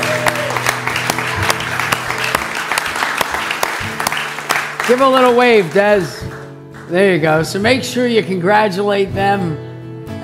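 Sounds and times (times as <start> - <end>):
audience applause at a church service welcoming a baby: 0.0 - 7.0
speech: 4.9 - 6.2, 6.9 - 9.7.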